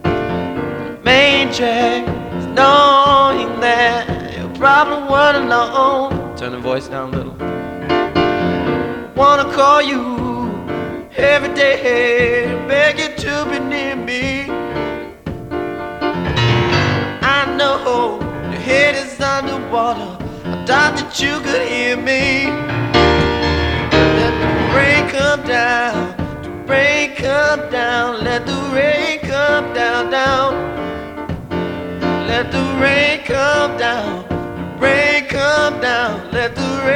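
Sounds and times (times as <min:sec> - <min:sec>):
piano: 0:00.0 - 0:36.9.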